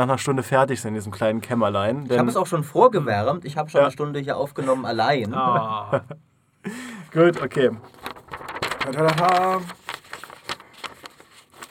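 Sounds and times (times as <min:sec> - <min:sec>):
speech: 0:00.0 - 0:08.0, 0:08.8 - 0:09.8
laughter: 0:04.6 - 0:06.2
paper or packaging rustling: 0:07.1 - 0:11.6.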